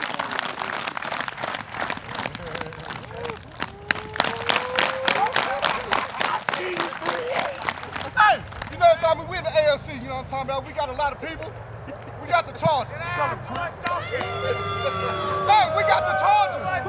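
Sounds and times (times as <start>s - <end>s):
crowd hand clapping: 0.0s - 16.8s
laughter: 0.4s - 16.8s
speech: 10.3s - 11.7s, 12.3s - 16.8s.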